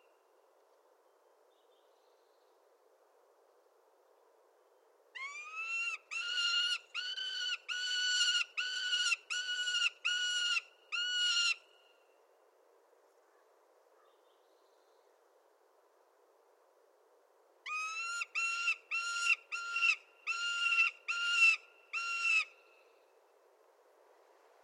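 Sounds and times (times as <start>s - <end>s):
Prairie Falcon Falco mexicanus calling: 5.2s - 11.6s, 17.7s - 22.6s.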